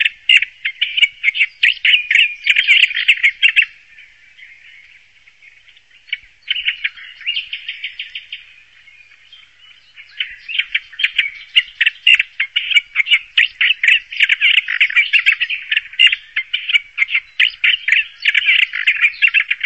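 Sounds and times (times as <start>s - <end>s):
bird harsh chattering: 0.0s - 3.7s, 10.1s - 19.6s.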